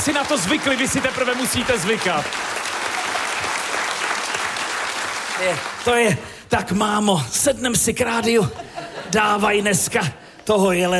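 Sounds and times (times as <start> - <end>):
speech: 0.0 - 2.6, 5.4 - 10.9
audience applause in Havlíčkův Brod: 0.0 - 6.1
laughter: 8.3 - 10.2.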